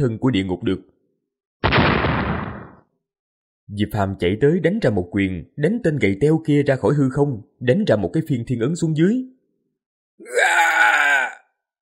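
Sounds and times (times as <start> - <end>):
speech: 0.0 - 1.0, 3.7 - 9.4, 10.2 - 10.7
man's anguished scream of pain: 10.2 - 11.5.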